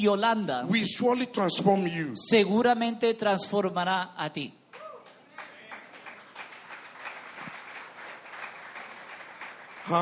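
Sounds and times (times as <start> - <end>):
speech: 0.0 - 4.8
audience clapping: 4.7 - 10.0.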